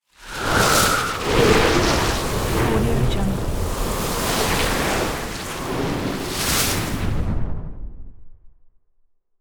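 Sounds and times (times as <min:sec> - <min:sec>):
elemental sand spell cast: 0:00.1 - 0:07.2.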